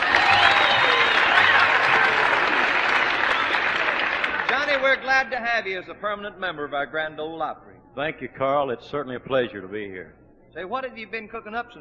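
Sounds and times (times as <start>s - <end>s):
Grand Ole Opry audience applauding: 0.0s - 5.4s
speech: 4.8s - 11.7s.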